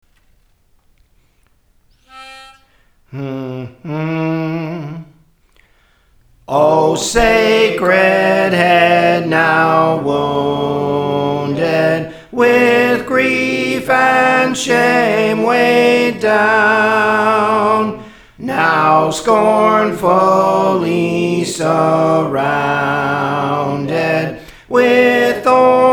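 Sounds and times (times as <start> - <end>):
soprano singing songs: 6.5 - 25.9.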